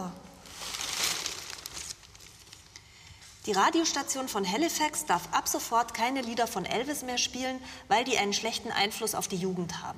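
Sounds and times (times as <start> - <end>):
1957 printed newspaper pages rustling as handled and turned: 0.4 - 2.8
speech: 3.4 - 9.9.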